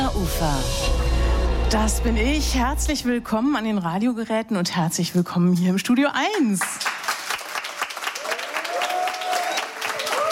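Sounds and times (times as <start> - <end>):
speech: 0.2 - 1.1, 1.7 - 6.9
studio audience applause: 6.3 - 10.3.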